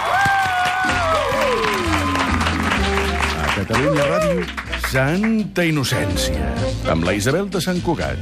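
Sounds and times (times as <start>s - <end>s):
schoolchildren applauding loudly: 0.0s - 4.8s
speech: 3.7s - 8.2s.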